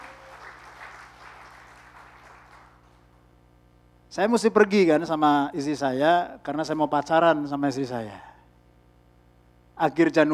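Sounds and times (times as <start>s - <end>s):
audience applause: 0.0s - 3.0s
speech: 4.1s - 8.3s, 9.8s - 10.3s.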